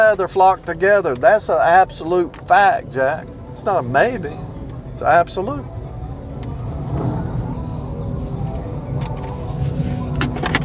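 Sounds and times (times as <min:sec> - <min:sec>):
motorcycle engines idling and rumbling around a gas station: 0:00.0 - 0:10.6
speech: 0:00.1 - 0:05.7.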